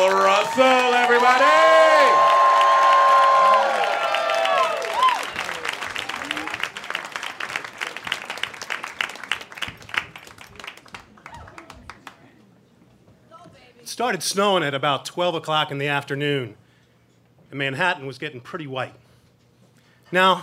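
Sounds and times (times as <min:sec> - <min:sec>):
crowd cheering and whooping: 0:00.0 - 0:07.0
audience applause for storyteller: 0:00.0 - 0:12.3
speech: 0:00.5 - 0:01.6, 0:14.0 - 0:16.6, 0:17.5 - 0:19.0, 0:20.1 - 0:20.4.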